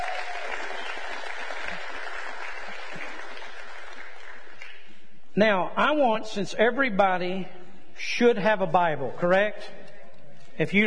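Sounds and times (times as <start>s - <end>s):
audience clapping hands: 0.0s - 5.0s
speech: 5.4s - 9.8s, 10.6s - 10.8s.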